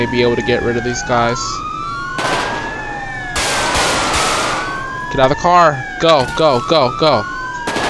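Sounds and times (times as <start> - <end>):
speech: 0.0 - 1.7, 5.1 - 7.4
gunfire: 2.2 - 2.7, 3.4 - 4.7, 7.7 - 7.8.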